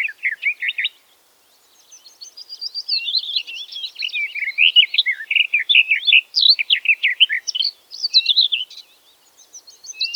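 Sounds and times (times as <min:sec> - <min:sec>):
garden warbler song: 0:00.0 - 0:10.1.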